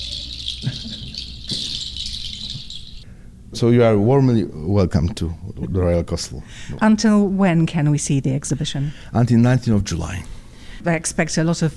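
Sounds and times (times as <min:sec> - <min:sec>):
birds twittering and trilling: 0:00.0 - 0:03.1
speech: 0:03.5 - 0:11.7.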